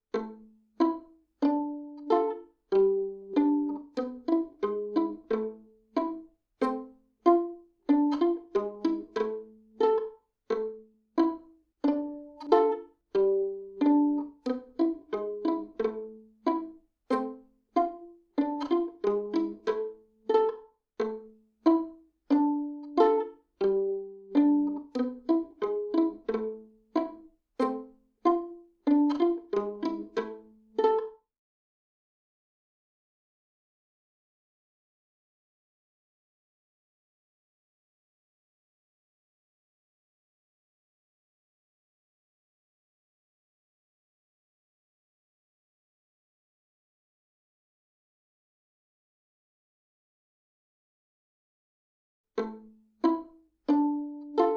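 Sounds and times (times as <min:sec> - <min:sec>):
ballet pizzicato: 0:00.1 - 0:31.2, 0:52.4 - 0:54.5.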